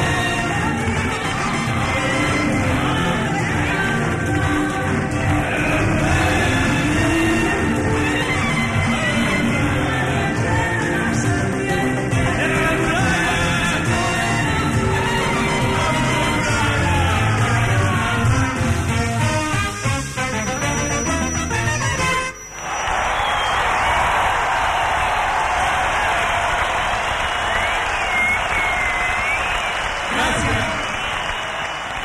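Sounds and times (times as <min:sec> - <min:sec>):
live music: 0:00.0 - 0:22.8
bullring crowd cheering and applauding: 0:00.0 - 0:32.0.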